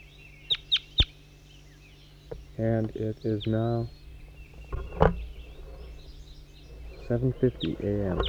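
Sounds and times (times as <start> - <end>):
bird calling: 0.0 - 8.2
faint hum: 0.0 - 8.2
speech: 2.6 - 4.0, 7.1 - 8.2.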